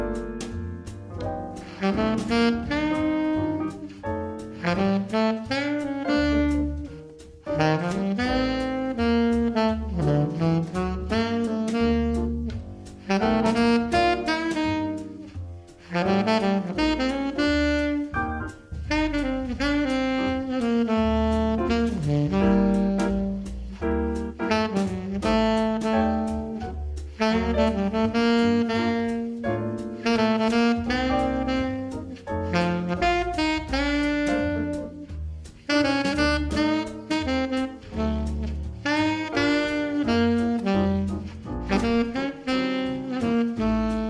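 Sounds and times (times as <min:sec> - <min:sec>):
alto saxophone: 0:00.1 - 0:44.0.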